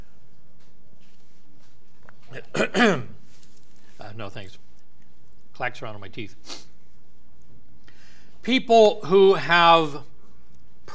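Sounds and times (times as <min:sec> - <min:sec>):
man coughing and clearing his throat from a tickle: 0:02.3 - 0:03.2
speech: 0:04.2 - 0:04.7, 0:05.6 - 0:06.7, 0:08.4 - 0:10.1.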